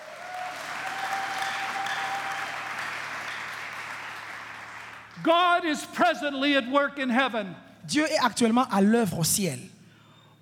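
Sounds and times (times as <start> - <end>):
congregation at a bilingual English and French church service applauding: 0.0 - 6.0
speech: 5.2 - 9.8.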